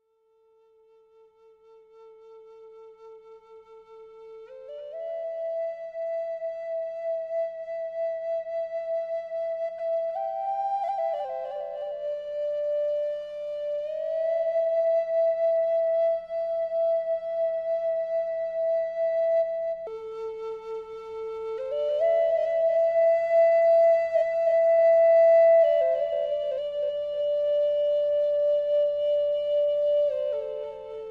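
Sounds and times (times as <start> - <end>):
flute: 0.0 - 31.1.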